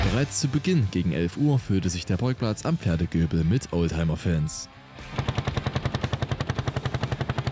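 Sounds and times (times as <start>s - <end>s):
speech: 0.2s - 5.3s
two-stroke engines running: 5.0s - 7.5s.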